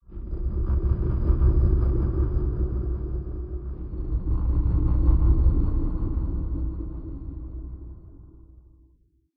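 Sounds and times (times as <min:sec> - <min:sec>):
pulsating underground cave ambience: 0:00.1 - 0:08.6.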